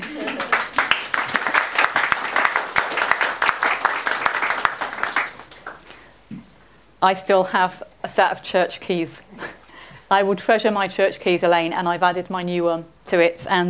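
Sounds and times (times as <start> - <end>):
audience applauding: 0.0 - 5.9
speech: 7.0 - 9.3, 10.1 - 13.6.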